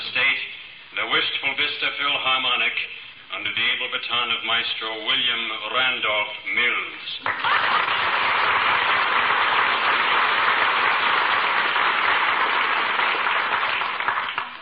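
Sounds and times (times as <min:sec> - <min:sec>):
speech: 0:01.0 - 0:09.0
audience applause for an orchestra conductor: 0:07.2 - 0:14.6.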